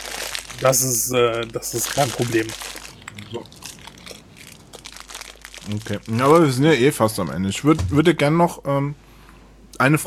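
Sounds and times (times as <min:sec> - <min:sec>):
someone eating a spiced almond left over from Christmas: 0:00.0 - 0:06.5
plastic bag crinkling: 0:00.0 - 0:07.2
speech: 0:00.6 - 0:03.6, 0:05.7 - 0:09.0, 0:09.8 - 0:10.0.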